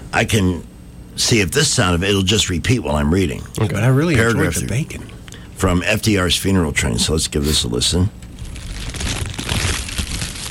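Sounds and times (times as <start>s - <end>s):
speech: 0.2s - 8.2s
candy wrapper crinkling: 8.4s - 10.4s.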